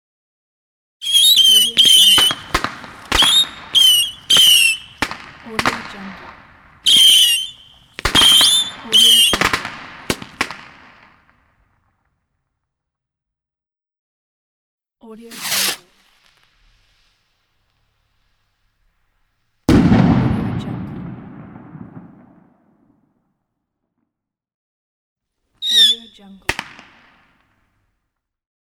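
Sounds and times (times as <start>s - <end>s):
fireworks: 1.0s - 11.9s, 15.3s - 22.8s, 25.6s - 27.6s.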